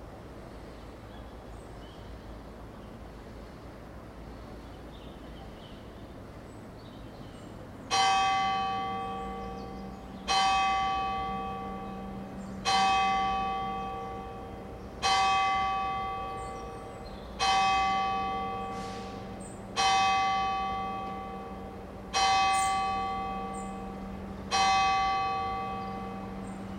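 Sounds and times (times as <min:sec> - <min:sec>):
cars in Alta Vallagarina: 0:04.4 - 0:26.7
bells in Alta Vallagarina: 0:07.9 - 0:26.7.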